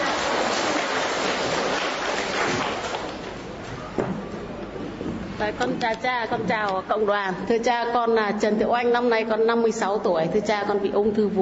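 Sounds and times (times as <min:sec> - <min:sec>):
audience applause: 0:00.0 - 0:03.4
speech: 0:05.4 - 0:11.4.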